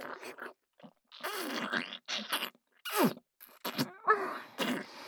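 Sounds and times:
hard kissing: 1.2s - 4.0s, 4.6s - 4.9s.

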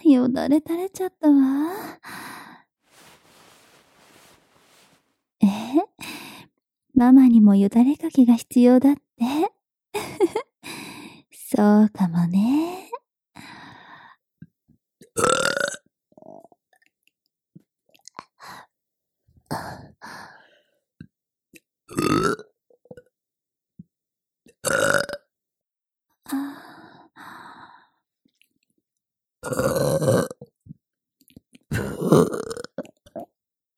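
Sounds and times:
speech: 0.1s - 2.2s, 7.0s - 9.4s, 11.5s - 12.8s
person burping: 15.2s - 16.4s, 21.9s - 22.5s, 24.6s - 25.3s, 29.4s - 30.4s, 31.7s - 33.3s.

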